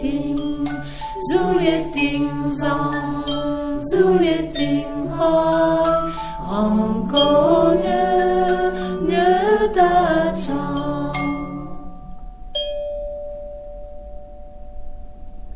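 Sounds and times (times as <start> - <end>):
people chanting: 0.0 - 11.9.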